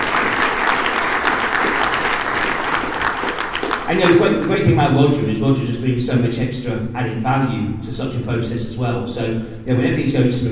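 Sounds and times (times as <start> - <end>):
audience applause: 0.0 - 4.6
speech: 3.9 - 10.5.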